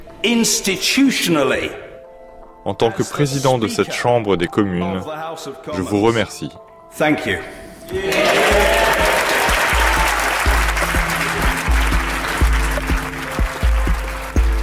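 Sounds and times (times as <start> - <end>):
speech: 0.2 - 1.8, 2.6 - 8.8
standing ovation clapping in the House of Commons: 8.0 - 14.6.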